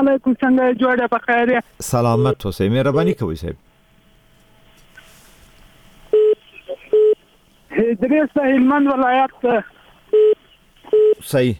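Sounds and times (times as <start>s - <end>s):
speech: 0.0s - 3.7s, 7.9s - 11.5s
telephone line beeps after a call drops: 6.1s - 7.2s, 10.1s - 11.2s.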